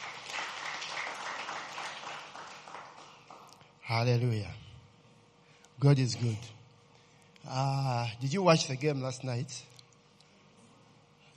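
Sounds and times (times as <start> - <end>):
audience applause: 0.0 - 3.6
speech: 3.9 - 4.6, 5.8 - 6.6, 7.4 - 9.7.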